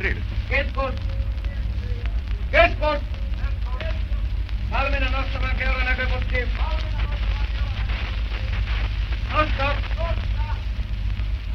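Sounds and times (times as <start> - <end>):
speech: 0.0 - 1.2, 2.5 - 3.2, 4.7 - 6.9, 9.3 - 10.3
submarine periscope rising, buzzing: 0.0 - 11.5.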